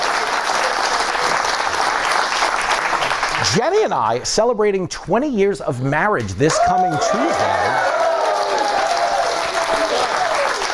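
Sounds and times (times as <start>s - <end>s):
audience applause: 0.0s - 3.9s, 6.5s - 10.7s
speech: 3.5s - 8.0s.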